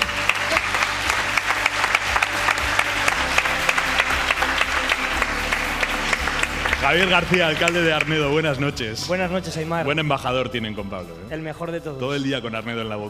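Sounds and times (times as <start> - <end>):
audience applause: 0.0 - 8.4
speech: 6.8 - 13.0.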